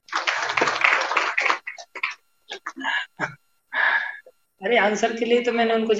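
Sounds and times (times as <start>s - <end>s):
audience clapping: 0.0s - 2.8s
speech: 4.6s - 5.9s.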